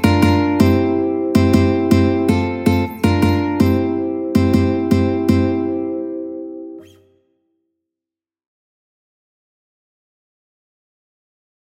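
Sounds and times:
ukulele duet: 0.0s - 6.3s.

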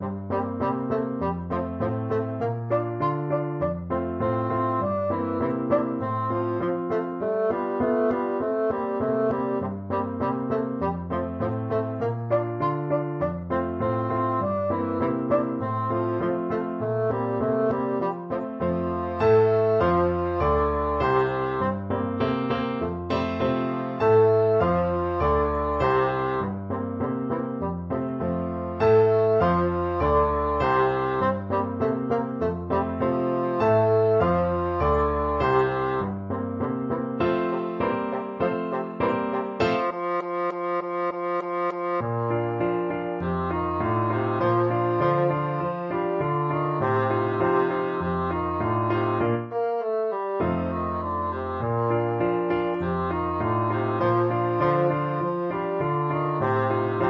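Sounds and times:
bassoon playing a can-can: 0.0s - 28.0s, 28.8s - 42.6s, 43.2s - 57.0s.

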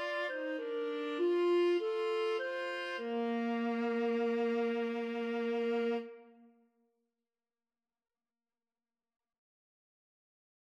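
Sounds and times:
clarinet and viola duet playing a hymn: 0.0s - 6.3s.

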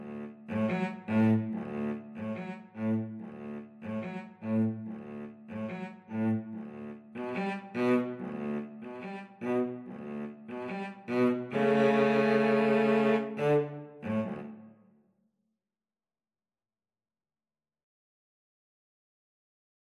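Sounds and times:
violin and cello duet: 0.0s - 14.6s.

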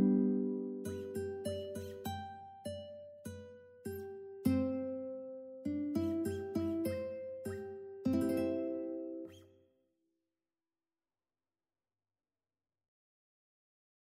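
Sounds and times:
Chinese love song with guitar: 0.0s - 9.5s.

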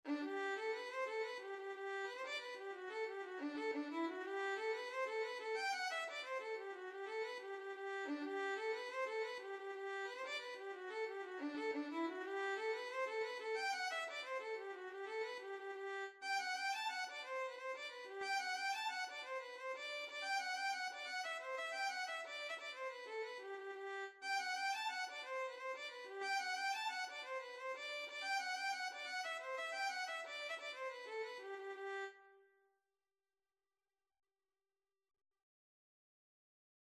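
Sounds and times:
violin: 0.1s - 32.4s.

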